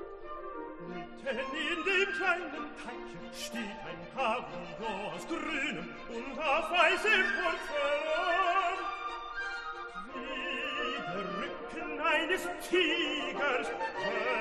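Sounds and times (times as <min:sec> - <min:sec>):
tenor singing: 0:00.6 - 0:14.3.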